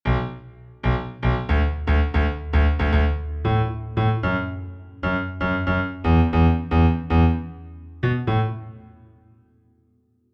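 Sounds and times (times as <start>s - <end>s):
bass: 0.0s - 9.2s.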